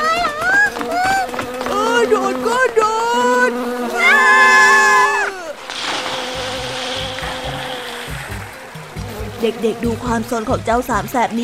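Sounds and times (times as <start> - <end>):
swarm of bees buzzing: 0.0 - 11.4
soft low thumps: 6.5 - 11.3
speech: 9.4 - 11.4.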